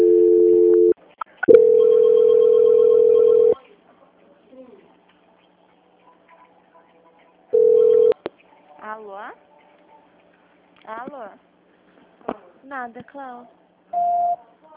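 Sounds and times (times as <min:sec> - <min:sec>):
telephone line tone beeps during a call transfer: 0:00.0 - 0:03.6, 0:07.6 - 0:08.2
speech: 0:12.8 - 0:14.4.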